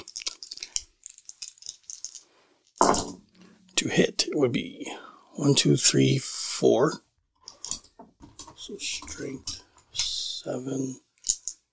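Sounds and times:
dice rattling and clattering: 0:00.0 - 0:03.0, 0:11.2 - 0:11.6
speech: 0:03.8 - 0:07.0, 0:08.7 - 0:09.6, 0:10.4 - 0:11.0.

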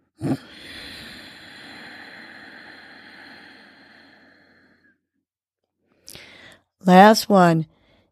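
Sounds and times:
intake of breath: 0:00.2 - 0:05.2, 0:05.9 - 0:06.7
slow exhale through the nose with contracted throat: 0:00.5 - 0:04.9
speech: 0:06.9 - 0:07.8.

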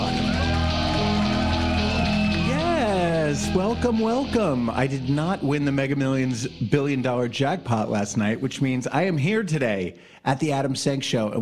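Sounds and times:
applause: 0:00.0 - 0:02.8
speech: 0:03.6 - 0:11.4.

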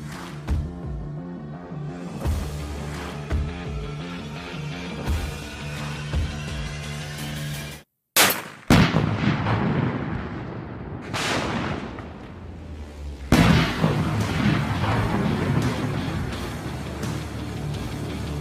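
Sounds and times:
dramatic music: 0:00.0 - 0:07.7, 0:12.4 - 0:18.3
booming gunfire from a 50 caliber gun: 0:08.2 - 0:12.6, 0:13.3 - 0:16.2.

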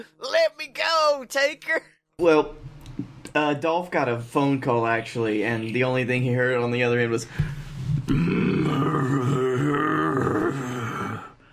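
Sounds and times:
speech: 0:00.0 - 0:02.7, 0:03.4 - 0:09.3
long deep gravelly throat clearing grunt: 0:08.1 - 0:11.4.

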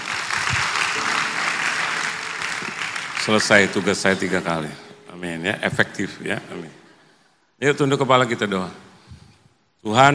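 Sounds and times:
audience applause: 0:00.0 - 0:04.8
speech: 0:03.2 - 0:06.8, 0:07.6 - 0:08.8, 0:09.8 - 0:10.1.

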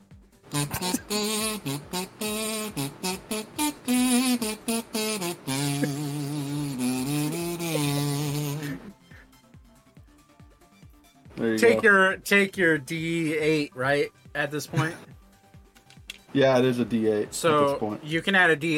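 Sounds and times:
speech: 0:00.5 - 0:02.9, 0:11.9 - 0:15.1, 0:16.4 - 0:18.7
kazoo playing: 0:00.5 - 0:09.4.

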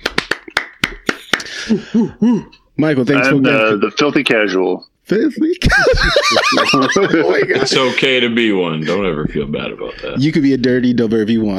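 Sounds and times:
hands clapping in a round of applause: 0:00.0 - 0:01.7
speech: 0:01.7 - 0:11.5.

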